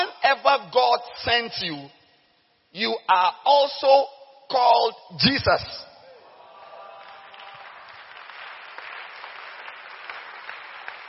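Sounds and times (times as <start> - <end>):
speech: 0.3 - 2.0, 2.7 - 5.9
crowd applause: 6.4 - 11.0.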